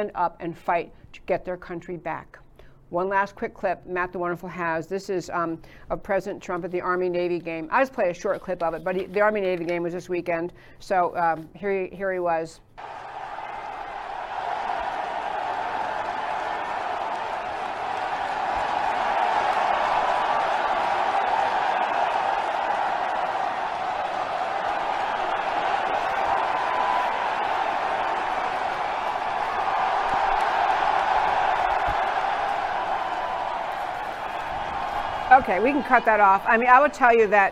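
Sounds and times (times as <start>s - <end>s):
speech: 0.0s - 13.0s, 35.5s - 37.5s
large stadium crowd applauding and cheering: 12.8s - 36.9s.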